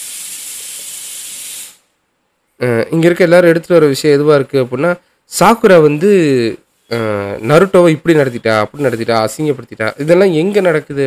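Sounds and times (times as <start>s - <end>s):
pressure cooker releasing steam: 0.0s - 1.9s
speech: 2.6s - 11.0s.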